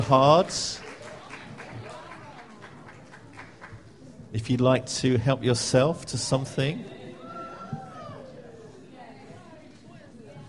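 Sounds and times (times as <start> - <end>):
speech: 0.0 - 0.8, 4.3 - 7.0
audience applause: 0.0 - 3.8.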